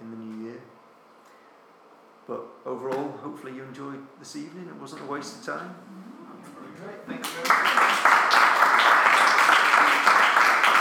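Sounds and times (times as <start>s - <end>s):
speech: 2.3s - 6.1s
audience applause: 7.2s - 10.7s.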